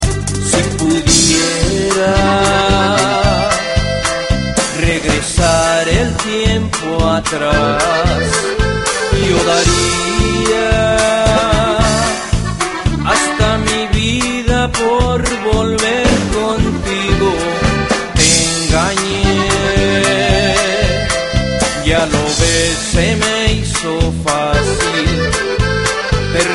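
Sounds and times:
norteño music: 0:00.0 - 0:26.5.

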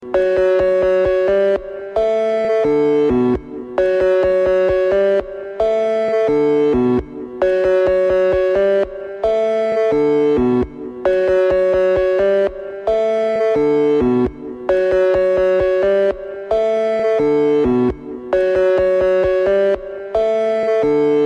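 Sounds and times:
synthesizer ringtone: 0:00.0 - 0:21.2.

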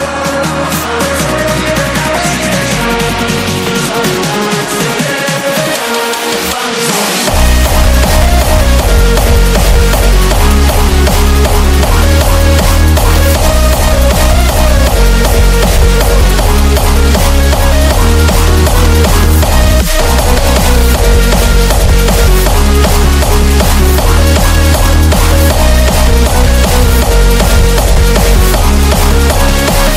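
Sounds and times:
hardstyle music: 0:00.0 - 0:29.9.

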